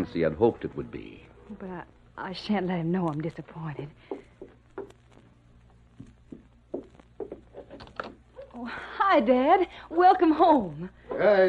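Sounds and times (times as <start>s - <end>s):
speech: 0.0s - 4.2s, 8.6s - 11.4s
slow dragging footsteps: 3.0s - 8.0s.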